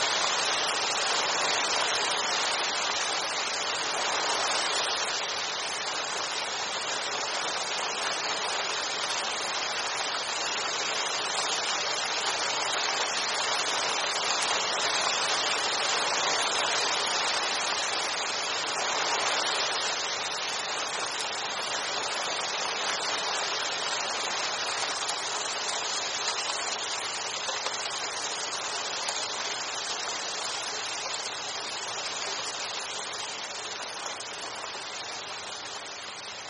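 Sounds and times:
rain heard from beneath the eaves: 0.0s - 36.4s.

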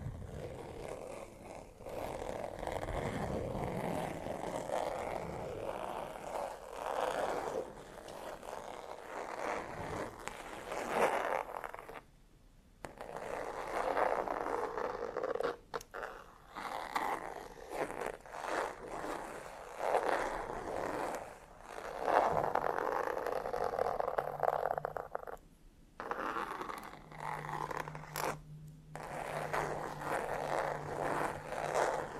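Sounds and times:
fingers scratching across textured leather: 0.0s - 12.0s, 12.8s - 25.4s, 26.0s - 28.4s, 29.0s - 32.1s
faint low steady hum: 0.0s - 32.1s.

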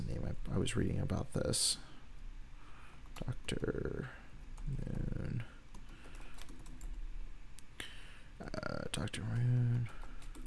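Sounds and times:
speech: 0.1s - 1.9s, 3.2s - 5.5s, 8.4s - 10.0s
rapid typing on a computer keyboard: 4.6s - 7.0s, 9.0s - 10.4s.

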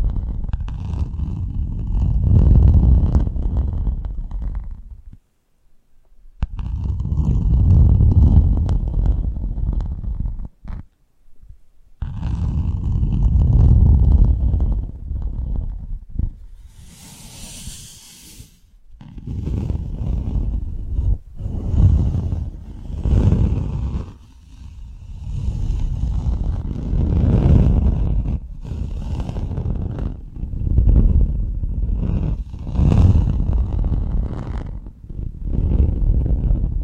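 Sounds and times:
muffled rubbing and scraping of ear picking props: 0.0s - 5.2s, 6.4s - 10.9s, 12.0s - 36.8s
short airy hiss: 16.6s - 18.8s.

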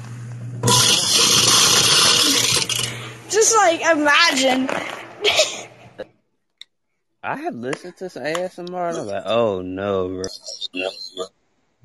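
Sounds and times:
garbage disposal running: 0.6s - 3.1s
speech: 3.5s - 6.1s, 7.2s - 11.8s.

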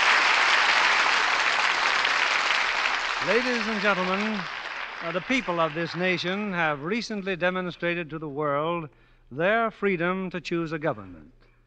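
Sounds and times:
audience applause: 0.0s - 6.9s
speech: 3.2s - 11.4s.

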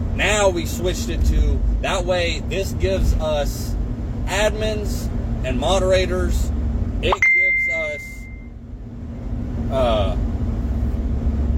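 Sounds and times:
low constant hum: 0.0s - 11.5s
speech: 0.3s - 7.2s
phone message notification chime: 7.1s - 8.5s.

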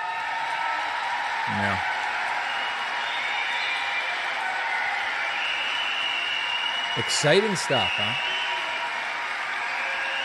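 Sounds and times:
crowd applauding during a speech: 0.0s - 10.2s
speech: 1.5s - 1.9s, 7.0s - 8.4s.

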